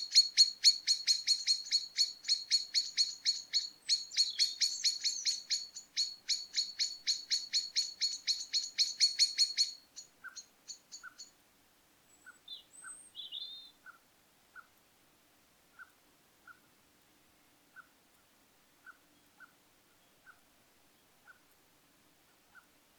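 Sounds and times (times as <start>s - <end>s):
common blackbird calls: 0.0s - 11.3s, 12.2s - 13.8s.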